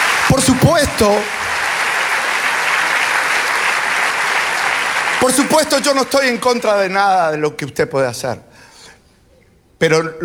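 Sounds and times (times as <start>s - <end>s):
audience applause: 0.0s - 7.0s
speech: 0.4s - 1.4s, 5.2s - 8.5s, 9.8s - 10.2s.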